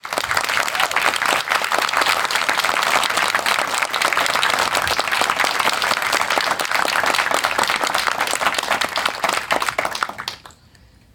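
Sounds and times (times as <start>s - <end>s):
applause: 0.0s - 10.7s.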